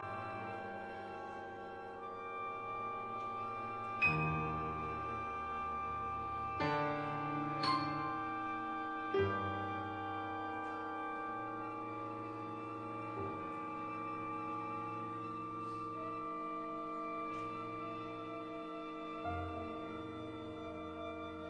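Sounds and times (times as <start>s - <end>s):
piano concerto: 0.0s - 21.4s.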